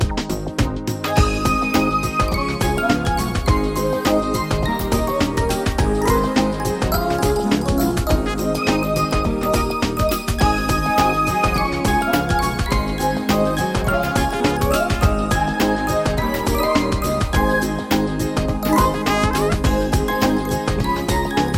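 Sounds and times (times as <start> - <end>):
funk music: 0.0 - 21.5.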